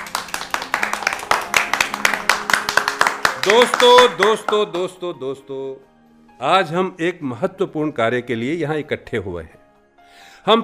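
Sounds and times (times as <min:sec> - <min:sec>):
group of people clapping in welcome: 0:00.0 - 0:05.0
speech: 0:03.4 - 0:09.6, 0:10.4 - 0:10.6.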